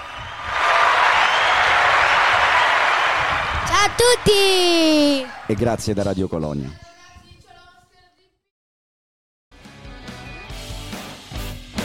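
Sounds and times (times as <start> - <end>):
applause: 0.0 - 5.6
speech: 3.9 - 6.9.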